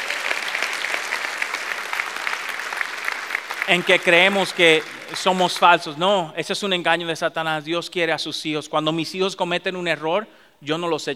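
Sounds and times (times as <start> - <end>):
audience applause: 0.0 - 6.0
speech: 3.7 - 11.1.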